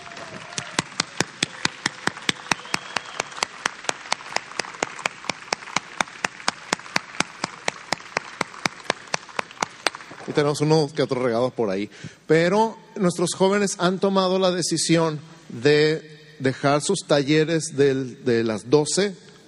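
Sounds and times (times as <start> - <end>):
sharp steady rhythmic claps: 0.0 - 10.5
audience applause: 0.0 - 10.6
speech: 10.3 - 19.3.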